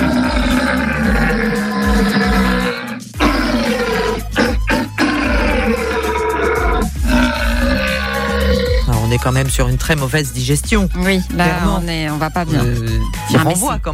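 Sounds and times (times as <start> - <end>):
red deer stag bellowing in the rut at Sainte-Croix wildlife park: 0.0 - 8.9
speech: 9.2 - 13.9.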